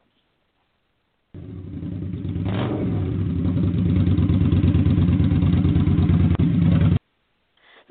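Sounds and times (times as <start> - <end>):
motorcycle engine revving: 1.4 - 7.0.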